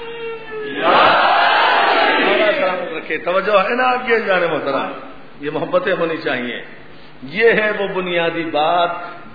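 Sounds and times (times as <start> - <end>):
crowd chanting a slogan at a religious gathering: 0.8 - 2.6
speech: 3.1 - 9.2.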